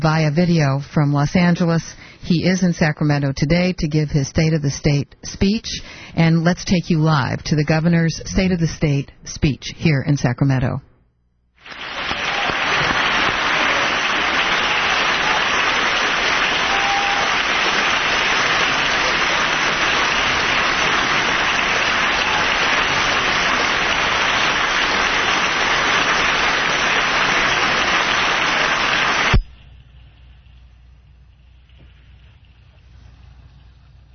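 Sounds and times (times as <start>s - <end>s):
speech: 0.0s - 10.9s
audience applause: 11.6s - 29.4s.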